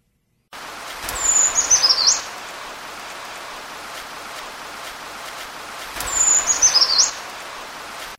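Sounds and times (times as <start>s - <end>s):
soft steady hiss: 0.0s - 8.1s
brown creeper song: 1.0s - 2.5s, 6.0s - 7.7s.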